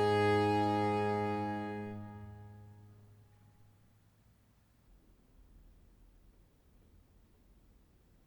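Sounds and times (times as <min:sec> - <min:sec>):
viol consort playing a fantasia in A minor: 0:00.0 - 0:02.6.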